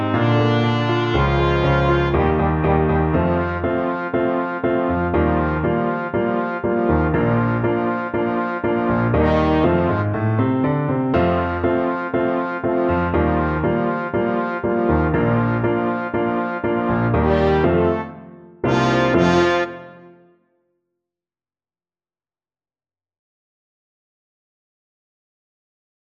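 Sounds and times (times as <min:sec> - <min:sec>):
trombone: 0:00.0 - 0:10.4, 0:11.2 - 0:20.2.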